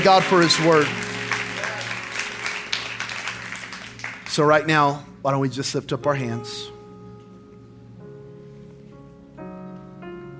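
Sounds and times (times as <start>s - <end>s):
speech: 0.0s - 1.1s, 4.4s - 6.7s
audience applauding: 0.0s - 4.8s.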